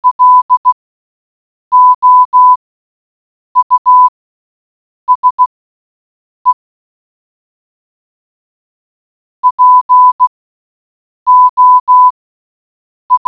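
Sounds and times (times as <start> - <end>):
morse code beeps: 0.0 - 0.7, 1.7 - 2.6, 3.6 - 4.1, 5.1 - 5.4, 9.4 - 10.3, 11.3 - 12.2.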